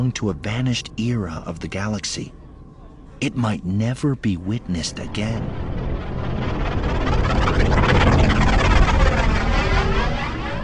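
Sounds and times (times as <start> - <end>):
speech: 0.0 - 2.4, 3.2 - 5.6
command shuttle engines grumbling while descending: 4.3 - 10.6.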